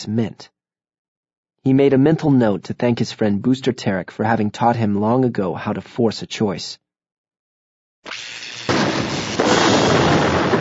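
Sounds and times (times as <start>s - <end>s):
speech: 0.0s - 0.6s, 1.6s - 6.8s, 8.0s - 9.0s
crackling roar: 8.1s - 10.5s
explosion blasting through a door: 8.6s - 10.5s.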